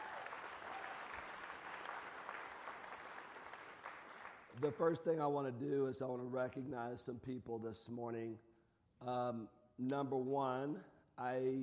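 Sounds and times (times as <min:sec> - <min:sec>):
audience applauding: 0:00.0 - 0:04.7
speech: 0:04.6 - 0:11.6.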